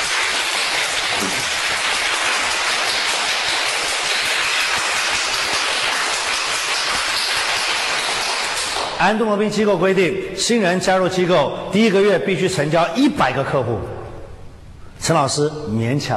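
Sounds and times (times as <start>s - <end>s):
audience applause: 0.0s - 9.0s
speech: 9.0s - 14.0s, 15.0s - 16.1s.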